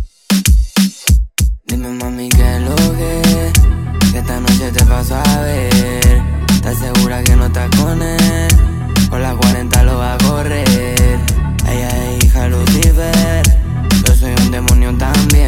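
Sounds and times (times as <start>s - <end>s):
intro music: 0.1s - 15.4s.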